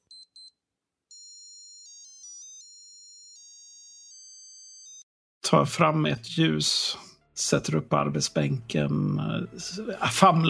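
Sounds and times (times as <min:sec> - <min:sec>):
Seiko wristwatch alarm beeping: 0:00.0 - 0:05.0
speech: 0:05.5 - 0:10.4.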